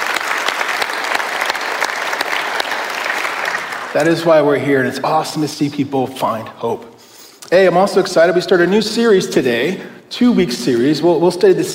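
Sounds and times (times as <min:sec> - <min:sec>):
audience applause: 0:00.0 - 0:04.3
speech: 0:03.9 - 0:06.9, 0:07.5 - 0:11.7.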